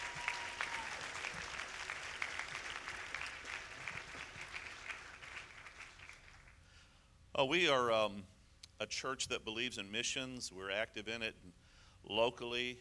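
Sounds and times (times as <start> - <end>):
audience applauding: 0.0 - 6.6
speech: 7.4 - 12.7.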